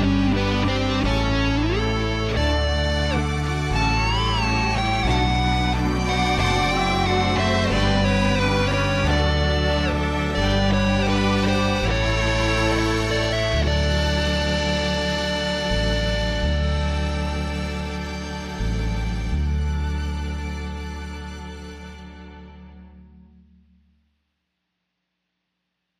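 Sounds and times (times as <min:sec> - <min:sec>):
rock cover song: 0:00.0 - 0:20.0.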